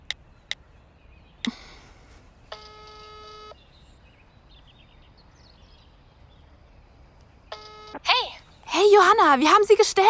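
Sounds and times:
telephone keypad DTMF beeps: 0:02.5 - 0:03.5, 0:07.5 - 0:08.0
steadier buzzing telephone tone: 0:02.5 - 0:03.6, 0:07.5 - 0:08.0
speech: 0:08.9 - 0:10.0.

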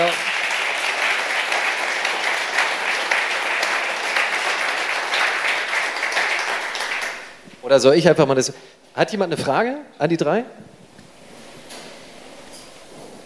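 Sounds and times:
audience applause: 0:00.0 - 0:07.6
speech: 0:07.7 - 0:10.6.

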